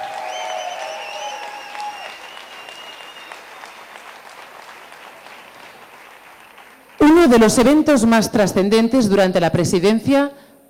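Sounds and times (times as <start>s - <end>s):
audience applauding during a speech celebrating civil society: 0.0s - 7.2s
speech: 7.2s - 10.4s.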